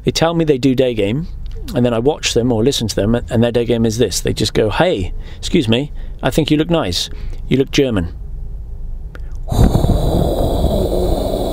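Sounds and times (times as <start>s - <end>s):
speech: 0.0s - 8.2s
person imitating a tumbleweed with a breathy hissing exhale: 9.5s - 11.5s.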